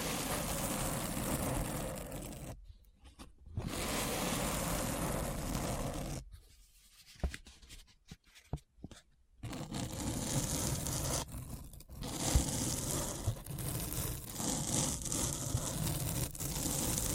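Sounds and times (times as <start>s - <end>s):
gritty scratching: 0.0s - 2.6s, 3.6s - 6.3s, 9.4s - 17.1s.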